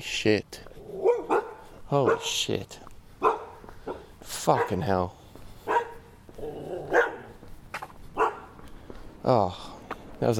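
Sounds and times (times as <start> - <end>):
speech: 0.0 - 0.7, 1.9 - 2.8, 4.4 - 5.2, 9.3 - 10.3
dogs barking: 0.8 - 2.5, 3.2 - 5.0, 5.6 - 7.4, 8.1 - 8.6.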